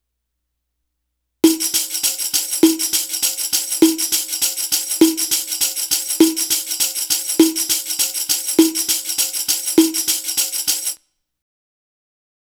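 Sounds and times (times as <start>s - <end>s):
Arabic rhythm percussion: 1.4s - 11.0s.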